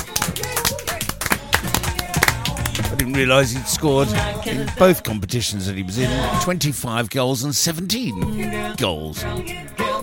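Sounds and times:
applause: 0.0s - 3.2s
speech: 3.0s - 10.0s.

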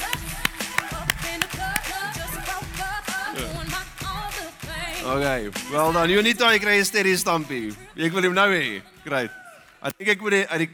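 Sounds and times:
audience clapping along in rhythm: 0.0s - 1.9s
speech: 5.0s - 10.7s.

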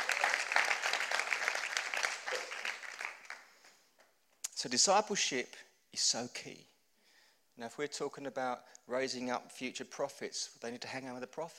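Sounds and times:
crowd applauding: 0.0s - 3.7s
speech: 4.6s - 6.7s, 7.6s - 11.5s.

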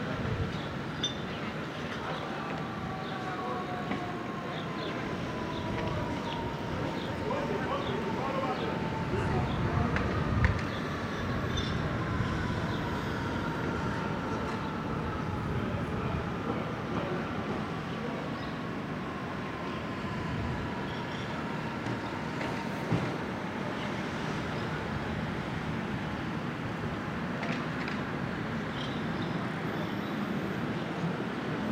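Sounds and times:
traffic-like rumble on a Brooklyn morning: 0.0s - 31.7s
faint voices: 1.4s - 21.8s.

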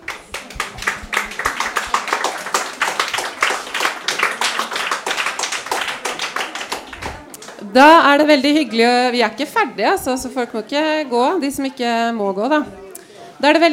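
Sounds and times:
crowd applause: 0.0s - 7.7s
speech: 7.7s - 12.8s, 13.4s - 13.7s.

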